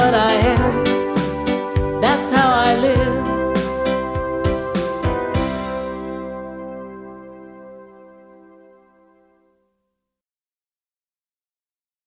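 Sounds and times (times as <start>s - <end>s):
positive action theme song: 1.1s - 6.9s.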